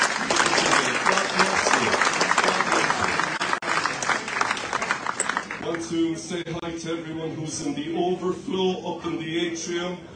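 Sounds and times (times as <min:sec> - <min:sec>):
large crowd enthusiastic applause: 0:00.0 - 0:05.8
speech: 0:05.9 - 0:10.1.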